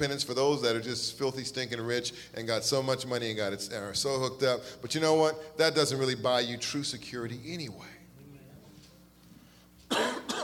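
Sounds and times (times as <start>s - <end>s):
speech: 0.0s - 8.0s
man coughing and clearing throat: 9.9s - 10.4s.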